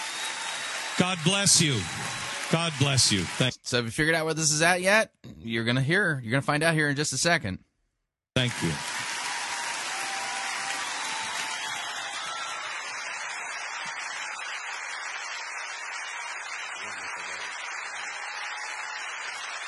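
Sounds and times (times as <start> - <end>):
standing ovation applause in a megachurch: 0.0 - 3.5, 8.4 - 19.6
speech: 1.0 - 7.7, 8.4 - 8.9.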